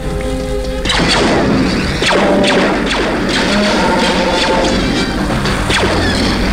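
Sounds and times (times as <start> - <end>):
heavy blast doors slamming shut: 0.0 - 6.5
roaring rumble: 0.0 - 6.5
steady tone: 0.0 - 6.5.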